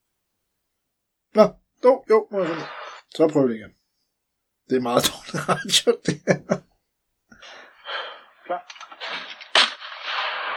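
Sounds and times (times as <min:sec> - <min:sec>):
speech: 0:01.4 - 0:03.8, 0:04.7 - 0:06.7
gunshot: 0:09.4 - 0:10.5.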